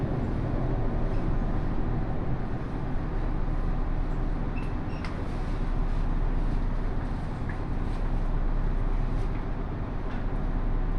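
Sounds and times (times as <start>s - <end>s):
Takayama Main Line local train rumble: 0.0s - 10.9s.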